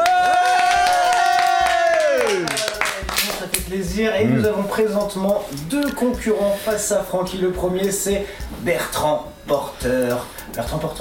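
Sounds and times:
crowd cheering: 0:00.0 - 0:03.3
applause: 0:00.0 - 0:03.7
speech: 0:04.0 - 0:11.0.

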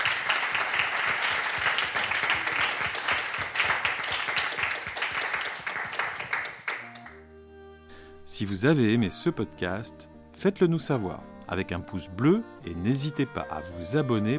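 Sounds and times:
audience applause: 0:00.0 - 0:07.2
speech: 0:08.4 - 0:14.3.

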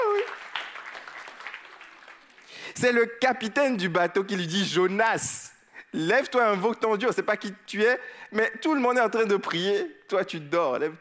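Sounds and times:
congregation applauding during a church service: 0:00.0 - 0:03.0
speech: 0:02.8 - 0:10.9.

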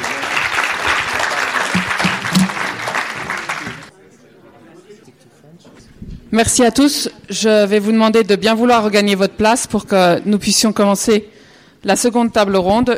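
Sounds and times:
audience applause: 0:00.0 - 0:03.9
speech: 0:06.3 - 0:12.9.

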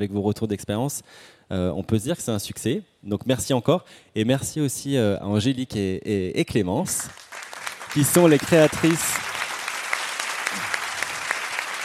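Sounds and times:
speech: 0:00.0 - 0:09.2
audience applause: 0:07.2 - 0:11.8.

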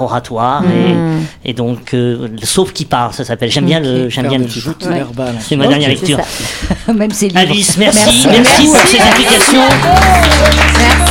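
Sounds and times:
speech: 0:00.0 - 0:11.0
laughter: 0:06.4 - 0:11.0
applause: 0:08.1 - 0:11.0.

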